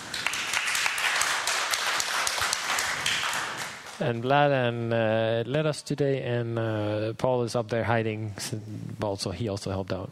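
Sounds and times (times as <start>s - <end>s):
crowd applauding: 0.0s - 4.1s
speech: 4.0s - 10.1s.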